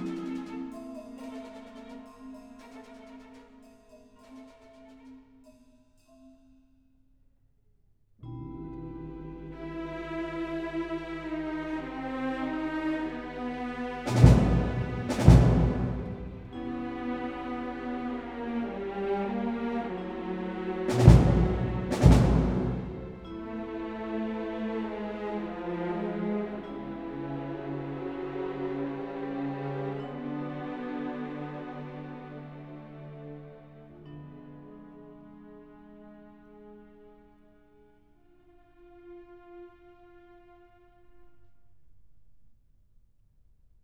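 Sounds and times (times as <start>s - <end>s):
ballet music for strings and percussion: 0.0s - 6.4s, 8.3s - 35.8s.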